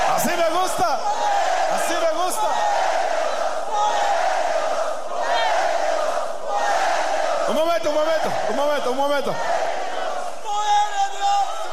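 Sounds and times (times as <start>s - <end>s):
crowd shouting: 0.0s - 11.7s
speech: 7.5s - 9.6s.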